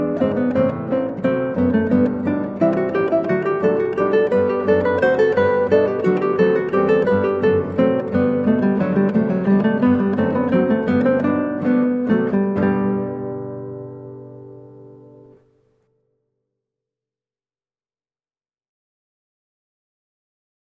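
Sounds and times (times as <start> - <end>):
baroque bourree played on guitar: 0.0 - 16.0.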